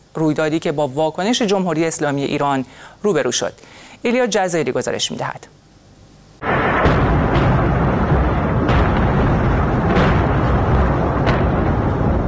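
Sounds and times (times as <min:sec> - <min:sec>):
speech: 0:00.2 - 0:05.6
missile strike explosions at Latakia port in western Syria: 0:06.4 - 0:12.2.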